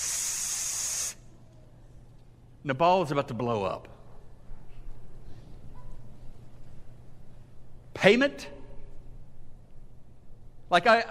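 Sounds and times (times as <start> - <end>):
hissing of a lit fuse: 0.0 - 1.2
speech: 2.6 - 4.0, 8.0 - 8.6, 10.7 - 11.0.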